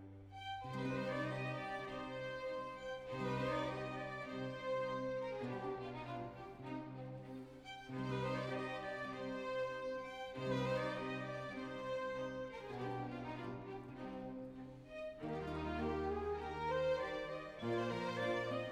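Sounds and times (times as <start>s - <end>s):
sinfonia andante: 0.0s - 18.6s.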